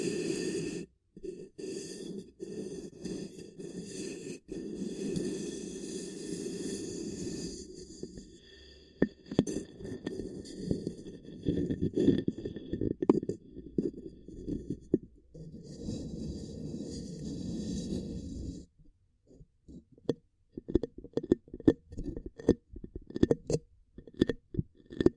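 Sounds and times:
ear cupping triggers: 0.0 - 18.6, 19.7 - 25.1.

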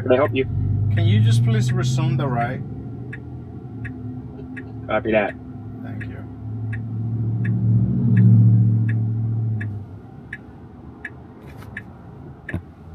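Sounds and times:
speech: 0.0 - 2.8, 4.9 - 6.1
low car engine rumble: 0.0 - 12.9
car hazard lights ticking: 3.0 - 12.8.

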